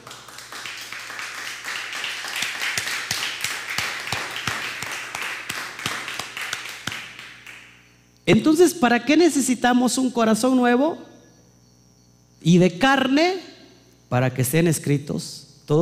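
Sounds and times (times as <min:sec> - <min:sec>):
audience applause: 0:00.0 - 0:07.6
speech: 0:08.3 - 0:11.1, 0:12.4 - 0:13.5, 0:14.1 - 0:15.8.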